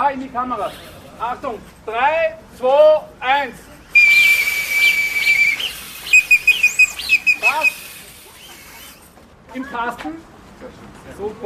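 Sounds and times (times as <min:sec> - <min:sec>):
speech: 0:00.0 - 0:03.7, 0:09.5 - 0:11.4
toy horn blast: 0:04.0 - 0:07.9.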